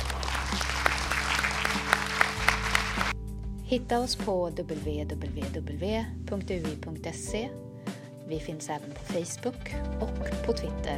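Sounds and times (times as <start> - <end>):
audience applause for panelists: 0.0 - 3.2
speech: 3.7 - 7.7, 8.3 - 10.9.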